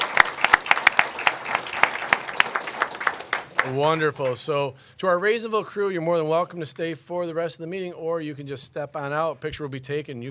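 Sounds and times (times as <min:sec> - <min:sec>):
audience applause: 0:00.0 - 0:04.4
speech: 0:03.6 - 0:10.3.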